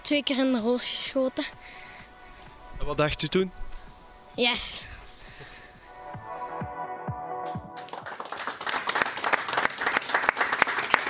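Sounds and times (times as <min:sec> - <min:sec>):
speech: 0:00.1 - 0:01.9, 0:02.8 - 0:03.6, 0:04.4 - 0:04.9
audience applause: 0:07.8 - 0:11.0.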